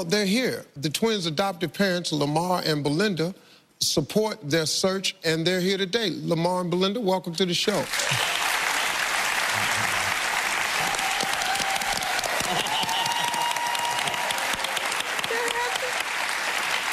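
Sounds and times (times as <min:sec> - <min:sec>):
speech: 0:00.0 - 0:08.4
studio audience applause: 0:07.8 - 0:16.9.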